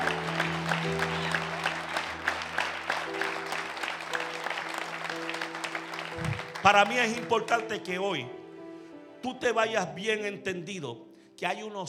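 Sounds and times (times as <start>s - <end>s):
audience applause: 0.0s - 7.9s
speech: 6.6s - 8.4s, 9.2s - 11.8s.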